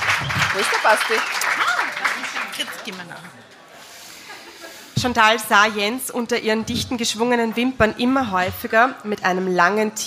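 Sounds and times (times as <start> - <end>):
crowd clapping: 0.0 - 3.7
speech: 0.6 - 1.6, 2.6 - 3.6, 5.0 - 10.0.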